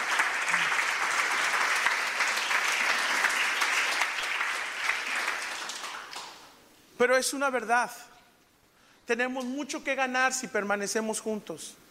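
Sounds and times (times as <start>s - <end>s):
audience applause: 0.0s - 6.5s
speech: 7.0s - 8.1s, 9.1s - 11.8s.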